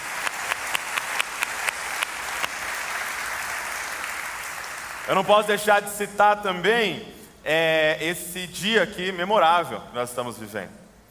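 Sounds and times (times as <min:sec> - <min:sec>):
audience applauding: 0:00.0 - 0:05.3
speech: 0:05.1 - 0:10.8.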